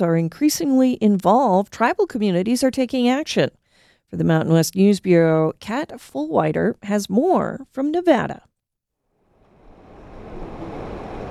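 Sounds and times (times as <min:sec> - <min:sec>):
speech: 0:00.0 - 0:08.5
river water flowing: 0:09.4 - 0:11.2.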